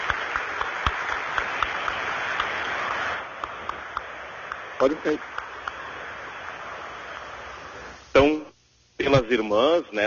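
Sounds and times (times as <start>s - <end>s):
crowd applause: 0.0s - 7.2s
speech: 4.8s - 5.4s, 9.2s - 10.0s.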